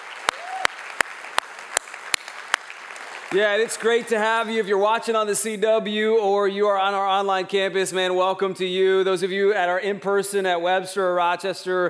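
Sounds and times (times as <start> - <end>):
sharp claps: 0.0 - 4.1
church congregation clapping in welcome: 0.0 - 4.7
speech: 3.3 - 11.8.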